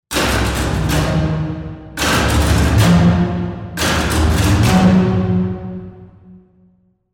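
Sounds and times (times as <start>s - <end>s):
string ensemble bass Bartok pizzicato: 0.1s - 6.6s.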